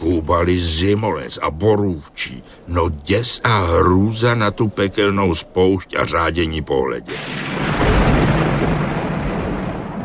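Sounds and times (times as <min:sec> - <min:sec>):
speech: 0:00.2 - 0:08.1
thunder from a clear sky rumbling: 0:07.1 - 0:10.0.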